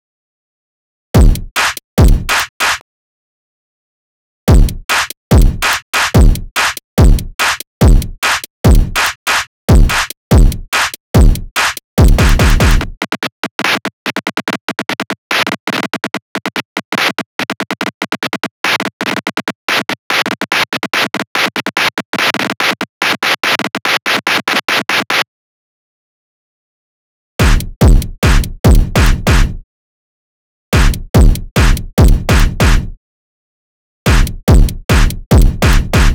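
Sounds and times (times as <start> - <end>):
drums: 1.2 - 2.8, 4.5 - 25.2, 27.4 - 29.5, 30.8 - 32.7, 34.1 - 36.1.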